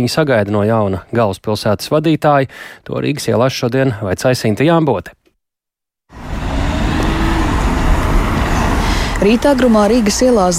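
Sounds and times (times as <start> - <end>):
speech: 0.0 - 5.2, 9.2 - 10.5
passing cars and engines on a city street in the morning: 6.1 - 10.5.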